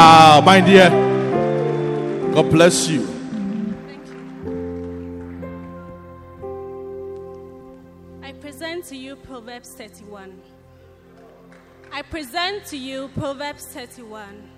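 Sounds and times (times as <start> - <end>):
audience clapping: 0.0 - 7.5, 11.0 - 12.3
speech: 0.4 - 1.1, 2.4 - 3.2, 12.0 - 14.5.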